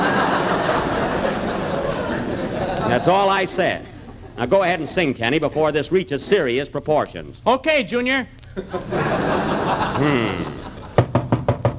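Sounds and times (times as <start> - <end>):
crowd laughing: 0.0 - 5.9, 8.5 - 11.1
speech: 3.0 - 10.7
knocking on a door: 11.0 - 11.7.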